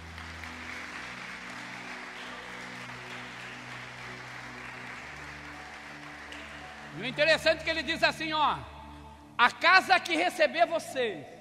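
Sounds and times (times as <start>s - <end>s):
crowd applauding: 0.0s - 8.1s
speech: 7.0s - 8.7s, 9.4s - 11.3s.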